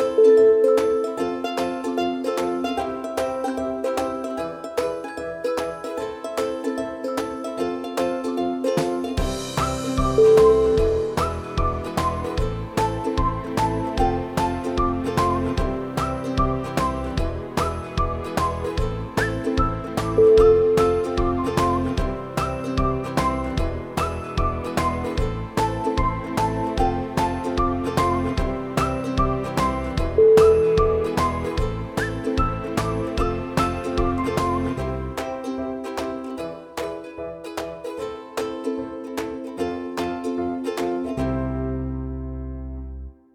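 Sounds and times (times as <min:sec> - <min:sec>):
upbeat ukulele: 0:00.0 - 0:43.3
whistling: 0:09.6 - 0:28.2, 0:28.8 - 0:34.6.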